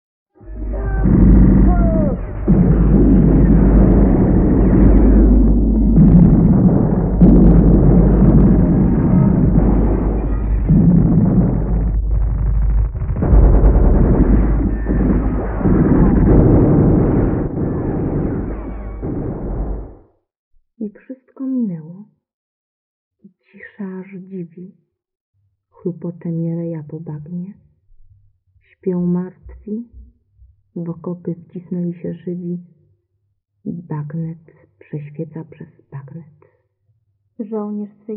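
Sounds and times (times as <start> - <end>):
battlefield explosions: 0.6 - 20.0
speech: 26.0 - 27.5, 28.8 - 30.0, 30.8 - 32.8, 33.6 - 36.4, 37.4 - 38.1.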